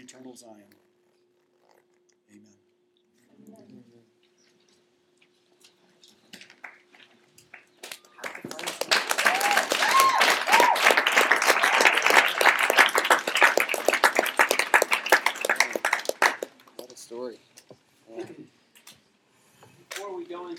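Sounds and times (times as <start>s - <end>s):
speech: 0.1s - 0.9s, 2.3s - 2.6s
audience clapping: 6.6s - 6.8s, 7.4s - 17.1s
people whooping: 7.8s - 16.4s.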